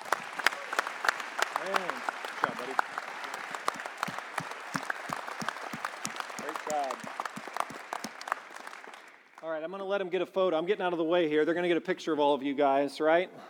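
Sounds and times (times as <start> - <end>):
audience applause: 0.0 - 9.5
speech: 9.7 - 13.4.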